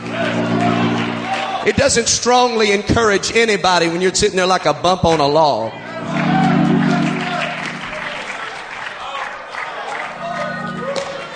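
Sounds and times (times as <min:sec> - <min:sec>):
audience clapping hands: 0:00.0 - 0:02.0, 0:06.0 - 0:11.3
speech: 0:01.6 - 0:06.2.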